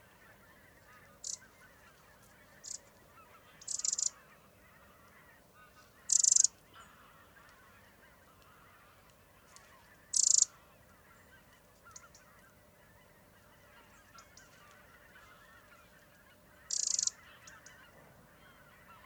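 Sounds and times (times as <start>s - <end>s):
faint birdsong: 0.0s - 19.0s
Eurasian wren rattling calls: 3.7s - 4.1s, 6.1s - 6.5s, 10.1s - 10.5s, 16.7s - 17.1s.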